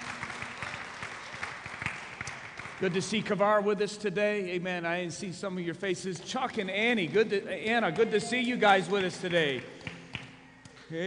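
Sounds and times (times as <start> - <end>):
audience hand clapping: 0.0 - 3.4, 6.2 - 11.0
speech: 2.8 - 9.8.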